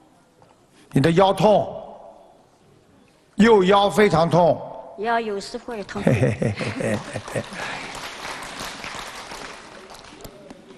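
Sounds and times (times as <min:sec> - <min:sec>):
speech: 0:00.9 - 0:01.8, 0:03.4 - 0:07.9
laughter: 0:05.9 - 0:08.2
audience clapping: 0:06.6 - 0:10.7.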